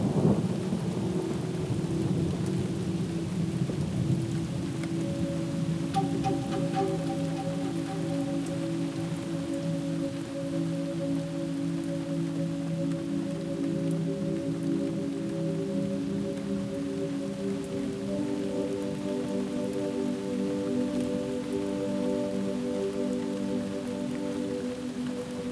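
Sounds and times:
heavy rain: 0.0s - 25.4s.

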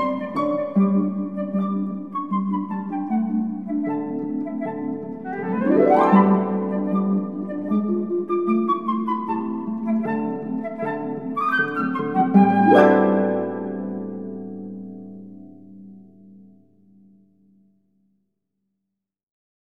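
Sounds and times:
flute playing a polka: 0.0s - 15.5s
harp playing a polka: 0.0s - 16.9s.

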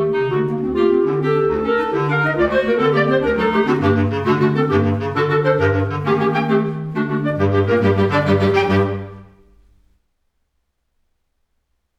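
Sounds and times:
quartet playing a scherzo allegro vivo: 0.0s - 9.4s.

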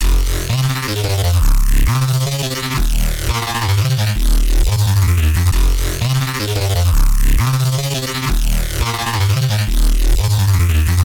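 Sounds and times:
bass: 0.0s - 11.0s.

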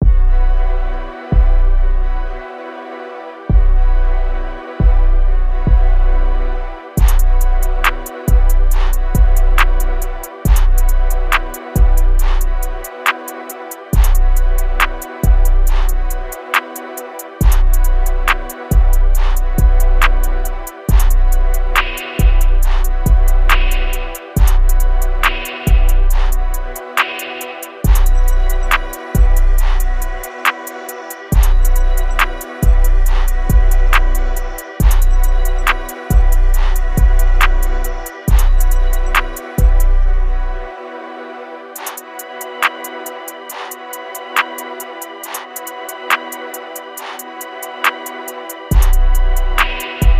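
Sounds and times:
minor trap beat at 140 BPM: 0.0s - 2.5s, 3.4s - 40.8s, 41.8s - 50.1s.

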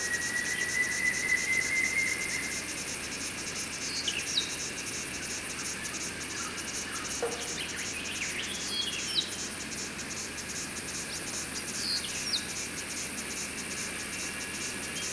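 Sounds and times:
pulsing insect chorus: 0.0s - 15.1s
squeaker frogs chirping: 3.2s - 13.1s.

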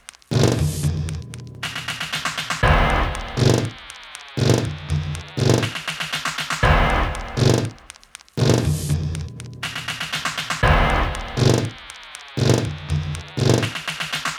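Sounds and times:
anxious ticking percussion: 0.0s - 14.3s.

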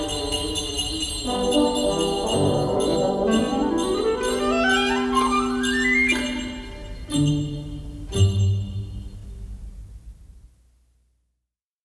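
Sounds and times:
orchestra playing a carol: 0.0s - 8.8s.

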